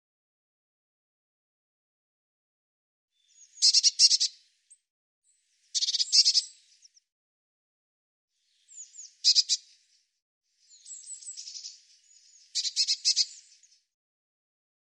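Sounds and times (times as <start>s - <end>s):
bird song with repeated high buzzy trilled phrases: 3.2s - 4.4s, 5.3s - 7.1s, 8.4s - 9.9s, 10.6s - 14.0s.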